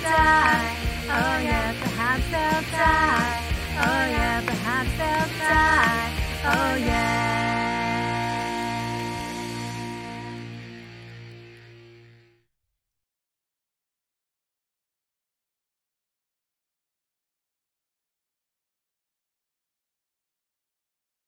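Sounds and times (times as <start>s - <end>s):
woman singing karaoke: 0.0s - 10.6s.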